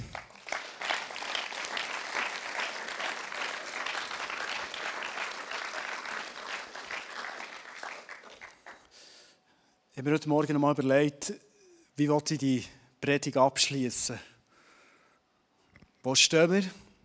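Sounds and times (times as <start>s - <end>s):
audience applause: 0.0s - 8.9s
speech: 10.0s - 11.4s, 12.0s - 14.3s, 16.0s - 16.8s.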